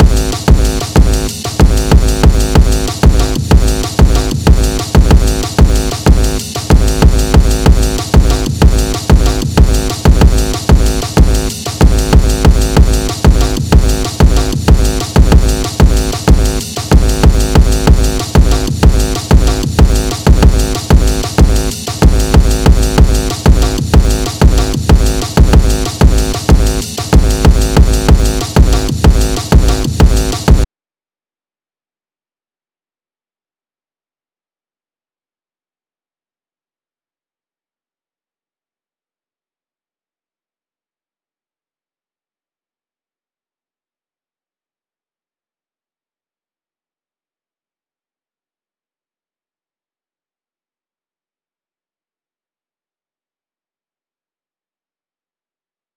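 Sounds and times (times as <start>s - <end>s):
breakcore music at 188 bpm: 0.0s - 30.7s.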